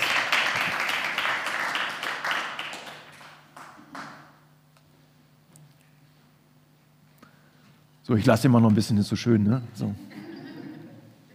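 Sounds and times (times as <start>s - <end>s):
applause: 0.0s - 4.4s
speech: 8.1s - 10.2s
laughter: 10.0s - 11.3s.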